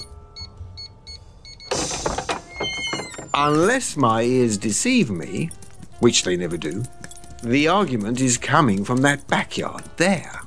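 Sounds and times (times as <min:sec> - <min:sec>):
dog gate opening: 0:01.7 - 0:03.8
speech: 0:03.4 - 0:10.4.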